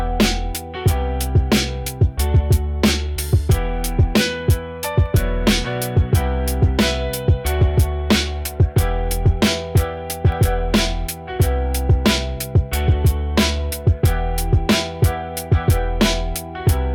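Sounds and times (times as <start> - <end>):
rap beat: 0.0 - 16.9.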